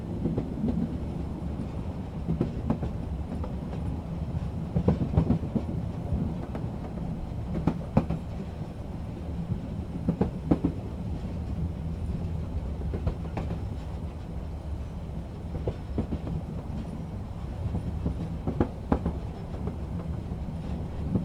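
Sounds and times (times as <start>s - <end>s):
train riding: 0.0s - 21.2s.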